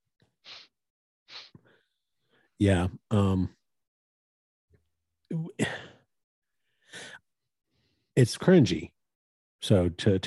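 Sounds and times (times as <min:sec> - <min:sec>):
person imitating sniffling: 0:01.3 - 0:01.6
speech: 0:02.6 - 0:03.6, 0:08.2 - 0:08.9, 0:09.6 - 0:10.2.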